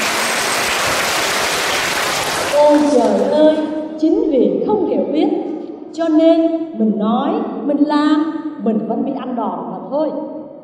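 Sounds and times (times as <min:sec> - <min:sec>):
audience applause: 0:00.0 - 0:03.3
speech: 0:02.6 - 0:10.4.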